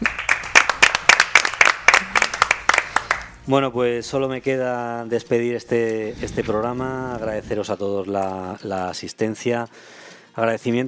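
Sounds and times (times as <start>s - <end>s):
applause: 0.0s - 3.4s
speech: 3.5s - 10.8s.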